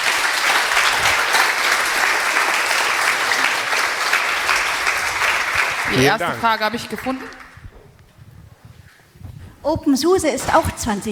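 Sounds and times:
audience applause: 0.0 - 7.7
speech: 5.9 - 7.4, 9.6 - 11.1.

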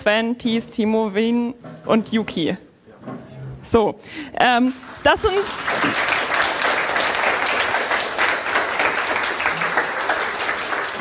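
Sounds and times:
speech: 0.0 - 6.1
audience applause: 4.8 - 10.9.

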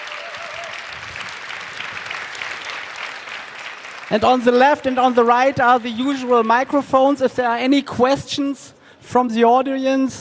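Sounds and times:
audience applause after a talk: 0.0 - 7.2
speech: 4.1 - 10.1.

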